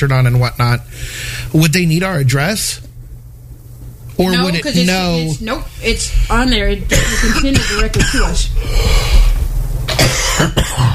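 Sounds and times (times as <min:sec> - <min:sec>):
speech: 0:00.0 - 0:02.8, 0:04.2 - 0:09.2, 0:10.0 - 0:10.9
low steady hum: 0:00.0 - 0:10.9
person coughing: 0:06.9 - 0:08.5, 0:09.9 - 0:10.9.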